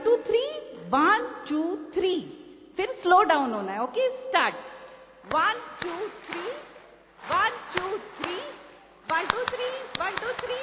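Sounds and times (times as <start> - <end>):
speech: 0.9 - 10.6
audience clapping along in rhythm during a music session: 5.3 - 10.6.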